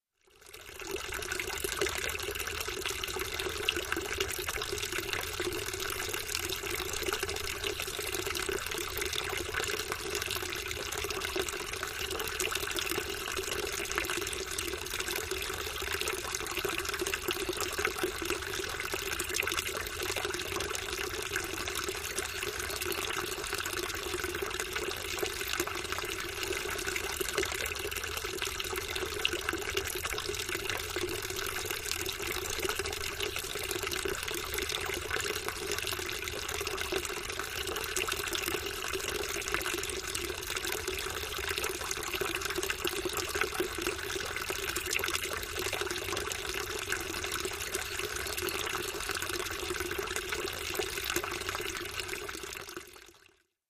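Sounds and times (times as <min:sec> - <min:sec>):
country water fountain: 0:00.3 - 0:53.3.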